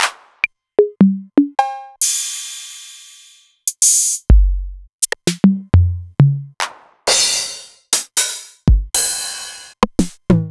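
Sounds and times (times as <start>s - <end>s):
Novation Drumstation drum machine: 0.0s - 10.5s.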